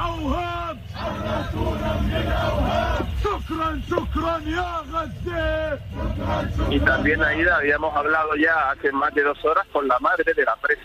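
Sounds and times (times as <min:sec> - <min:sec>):
militants chanting outside prison: 0:00.0 - 0:08.1
crowd noise: 0:00.0 - 0:09.9
speech: 0:03.4 - 0:10.8.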